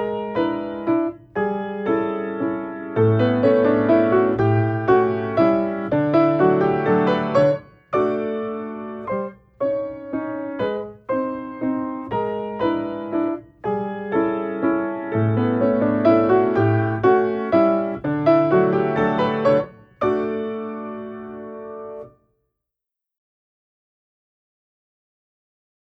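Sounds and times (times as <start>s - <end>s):
piano octave exercises: 0.0s - 22.1s.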